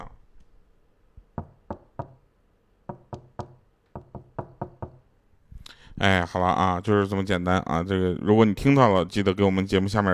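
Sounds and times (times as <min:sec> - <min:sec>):
tapping on a glass tabletop: 0:02.9 - 0:05.0
speech: 0:06.0 - 0:10.1.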